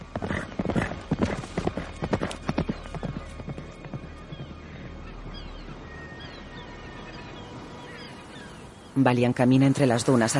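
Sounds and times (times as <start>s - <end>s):
black horse hooves galloping: 0.0s - 5.8s
speech: 9.0s - 10.3s.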